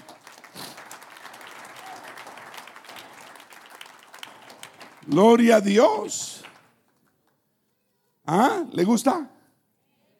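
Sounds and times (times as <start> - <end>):
audience applause: 0.0 - 6.7
speech: 5.0 - 6.4, 8.3 - 9.4.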